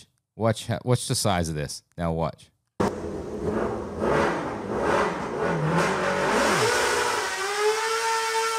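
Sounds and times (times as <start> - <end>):
speech: 0.4 - 2.5
miniature truck engine revving: 2.8 - 8.5.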